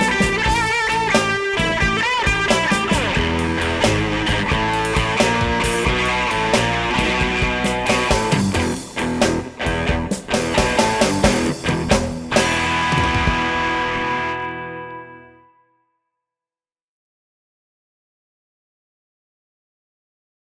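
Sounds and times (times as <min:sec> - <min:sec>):
blues rock guitars: 0:00.0 - 0:15.5.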